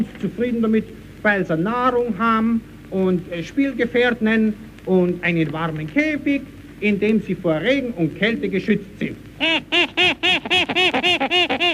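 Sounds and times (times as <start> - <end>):
speech: 0.0 - 9.9
small monkey calling: 9.4 - 11.7.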